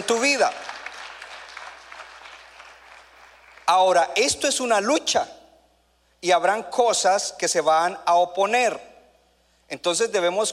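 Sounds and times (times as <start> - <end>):
speech: 0.1 - 0.7, 3.7 - 5.4, 6.2 - 8.9, 9.7 - 10.5
audience applause: 0.2 - 3.6.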